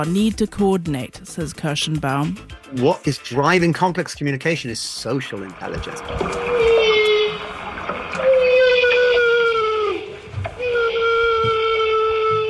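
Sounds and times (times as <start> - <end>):
speech: 0.0 - 6.8
humpback whales making a bubble net to catch herring: 5.4 - 12.4.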